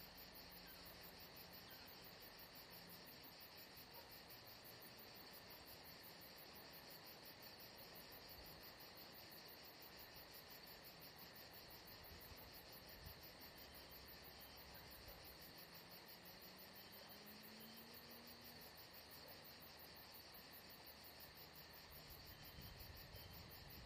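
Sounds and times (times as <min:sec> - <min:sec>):
crickets chirping at Saint-Jean-de-Luz: 0:00.0 - 0:23.8.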